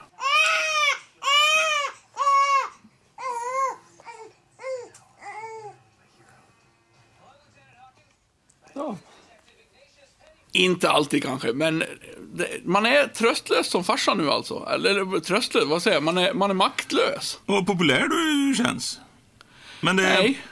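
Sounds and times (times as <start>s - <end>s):
baby crying: 0.0s - 5.8s
speech: 10.6s - 19.0s, 19.8s - 20.5s.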